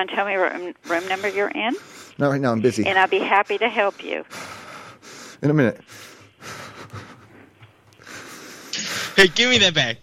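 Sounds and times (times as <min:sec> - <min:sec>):
speech: 0:00.0 - 0:04.4, 0:05.4 - 0:06.1, 0:09.2 - 0:10.0
noise: 0:00.0 - 0:10.0
man breathing heavily: 0:00.8 - 0:02.2, 0:03.9 - 0:09.2.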